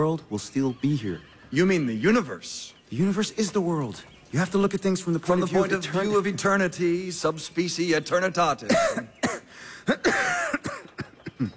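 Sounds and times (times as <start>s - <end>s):
speech: 0.0s - 10.4s
person coughing: 8.6s - 11.5s.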